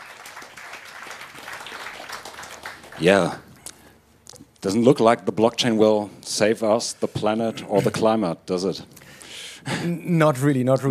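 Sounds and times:
audience applause: 0.0s - 3.4s
speech: 3.0s - 3.4s, 4.6s - 9.0s, 9.6s - 10.8s.

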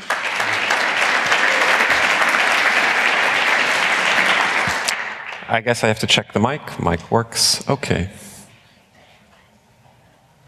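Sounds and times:
crowd clapping: 0.0s - 6.0s
speech: 5.5s - 8.2s.

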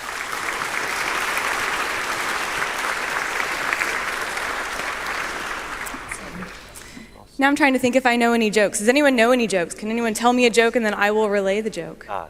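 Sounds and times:
audience round of applause: 0.0s - 6.9s
speech: 7.4s - 12.2s.

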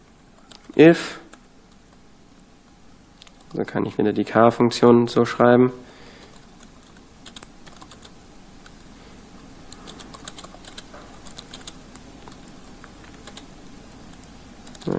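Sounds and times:
typing code on a computer keyboard: 0.4s - 2.0s, 3.2s - 3.6s, 6.2s - 8.9s, 9.7s - 13.5s, 14.1s - 14.9s
speech: 0.8s - 1.2s, 3.6s - 5.9s.

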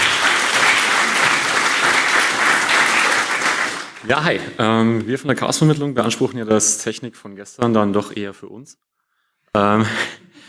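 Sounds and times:
audience applause: 0.0s - 4.4s
speech: 4.1s - 8.9s, 9.5s - 10.4s.

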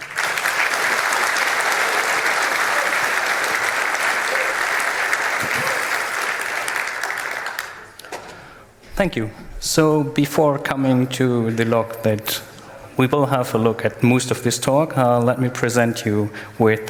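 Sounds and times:
audience applause for a speaker: 0.0s - 8.3s
speech: 9.0s - 16.8s.

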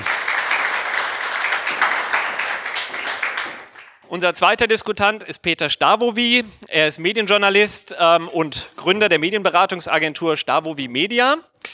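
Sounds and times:
audience applause: 0.0s - 4.1s
speech: 4.1s - 11.5s.

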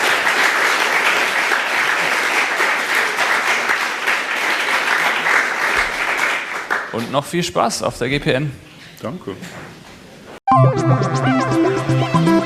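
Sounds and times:
audience applause after a talk at the GPN hacker event: 0.0s - 7.3s
speech: 7.0s - 9.8s, 10.7s - 11.6s.

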